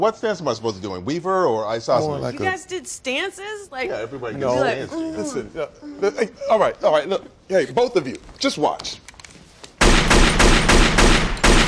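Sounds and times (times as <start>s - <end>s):
speech: 0.0s - 9.1s
gunshots at a shooting range during a firearms qualification: 9.8s - 11.6s.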